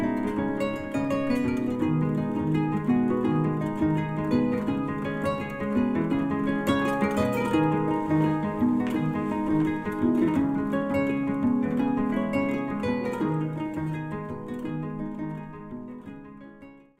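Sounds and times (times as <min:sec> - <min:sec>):
kora: 0:00.0 - 0:16.5.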